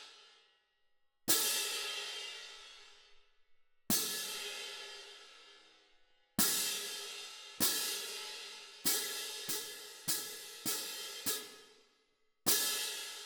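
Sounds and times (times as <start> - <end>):
cymbal: 1.3 - 2.9, 3.9 - 5.6, 6.4 - 11.8, 12.5 - 13.2.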